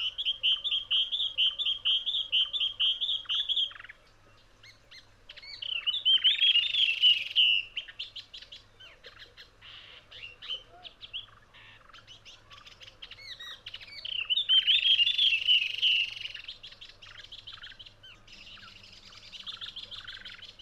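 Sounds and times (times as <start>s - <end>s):
spiny babbler: 0.0s - 20.6s.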